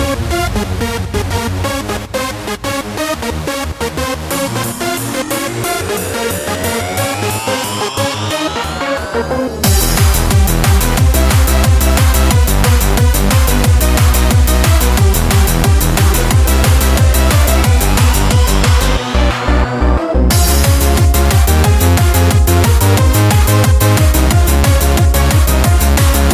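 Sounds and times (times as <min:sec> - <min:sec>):
hardcore music loops: 0:00.1 - 0:26.3.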